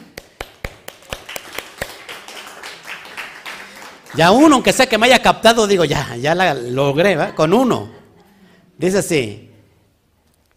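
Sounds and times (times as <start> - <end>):
applause: 0.0 - 4.8
speech: 4.2 - 8.0, 8.8 - 9.5.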